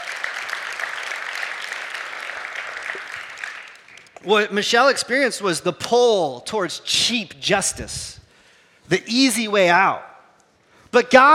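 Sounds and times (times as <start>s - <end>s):
audience applause: 0.0s - 4.2s
speech: 4.2s - 8.2s, 8.9s - 10.1s, 10.9s - 11.3s.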